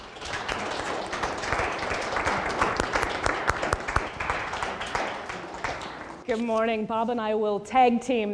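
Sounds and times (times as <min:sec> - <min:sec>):
audience applause welcoming two speakers to a podium: 0:00.0 - 0:06.2
speech: 0:06.3 - 0:08.3.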